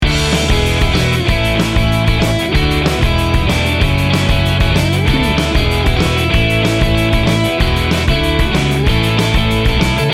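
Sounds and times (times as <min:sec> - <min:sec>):
upbeat indie rock loop: 0:00.5 - 0:09.9.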